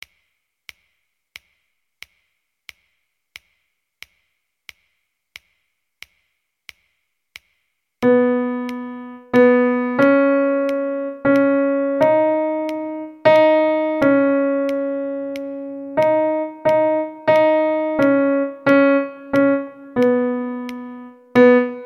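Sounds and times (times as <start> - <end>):
melodic dictation melody in 12/8: 8.0 - 21.8.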